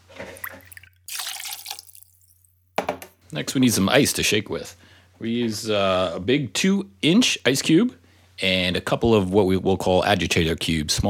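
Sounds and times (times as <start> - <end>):
rum being poured into a jigger or glass: 0.0 - 2.5
speech: 3.3 - 11.0.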